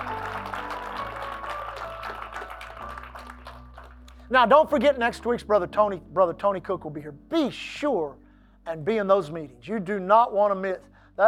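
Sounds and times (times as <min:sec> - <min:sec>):
audience hand clapping: 0:00.0 - 0:04.5
speech: 0:04.3 - 0:11.2.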